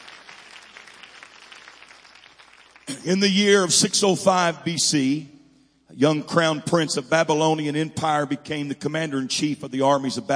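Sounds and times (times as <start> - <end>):
audience clapping hands: 0.0 - 3.3
speech: 2.9 - 5.4, 6.0 - 10.3.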